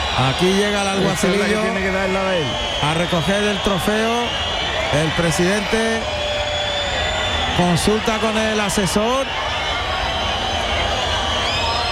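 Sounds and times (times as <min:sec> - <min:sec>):
bullring crowd at a bullfight calling for a second trophy: 0:00.0 - 0:11.8
speech: 0:00.2 - 0:06.2, 0:07.6 - 0:09.5.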